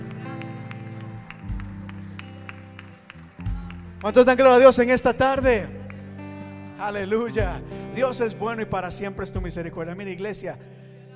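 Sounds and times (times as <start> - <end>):
audience clapping in a steady regular rhythm: 0.0 - 6.6
sustained keyboard chords: 0.0 - 11.1
speech: 4.0 - 5.8, 6.8 - 10.8.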